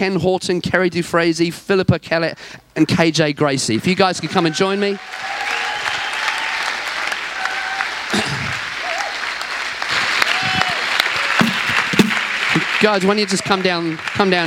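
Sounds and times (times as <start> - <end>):
speech: 0.0 - 5.6, 12.8 - 14.4
audience applause: 4.1 - 14.4.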